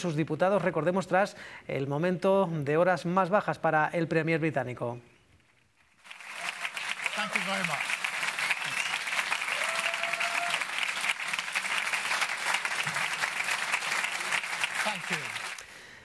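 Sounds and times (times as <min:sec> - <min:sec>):
speech: 0:00.0 - 0:05.1, 0:07.4 - 0:07.9
party members applauding: 0:06.0 - 0:15.9.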